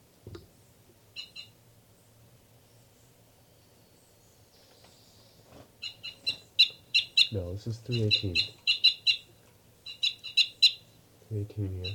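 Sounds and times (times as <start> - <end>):
bird calling loudly: 5.8 - 11.0, 11.7 - 11.9
speech: 7.3 - 8.6, 11.3 - 11.9.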